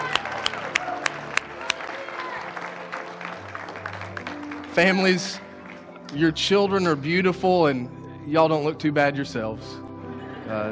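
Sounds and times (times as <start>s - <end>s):
church congregation cheering: 0.0s - 4.9s
church congregation applauding families at a service: 0.0s - 6.2s
speech: 4.8s - 5.4s, 6.1s - 9.8s, 10.5s - 10.7s
laughter: 10.0s - 10.7s.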